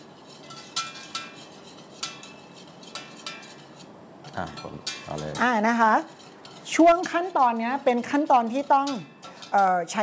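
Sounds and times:
utensil stirring a thickening mixture in a pot: 0:00.0 - 0:10.0
speech: 0:04.4 - 0:10.0.

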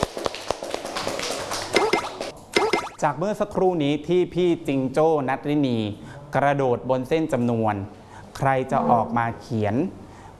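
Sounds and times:
children clapping in a classroom: 0:00.0 - 0:02.7
speech: 0:03.0 - 0:10.0.

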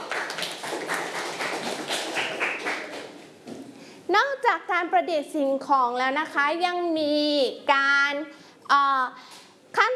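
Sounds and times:
children clapping hands: 0:00.0 - 0:03.2
speech: 0:04.8 - 0:09.9.

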